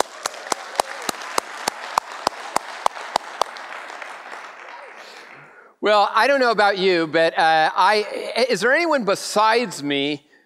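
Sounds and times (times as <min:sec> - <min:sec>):
audience clapping at a Christmas Eve church service: 0:00.0 - 0:05.5
speech: 0:05.8 - 0:10.3.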